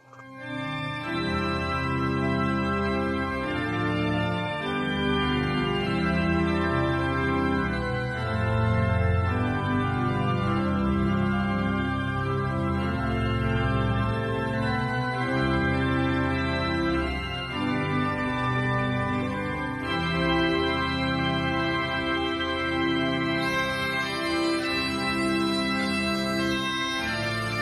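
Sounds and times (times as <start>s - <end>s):
official town anthem: 0.0s - 27.5s.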